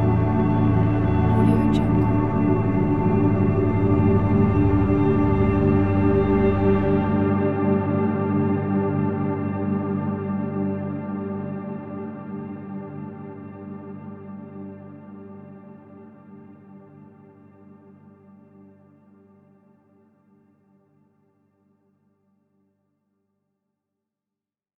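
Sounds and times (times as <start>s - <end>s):
deep dark background: 0.0s - 13.5s.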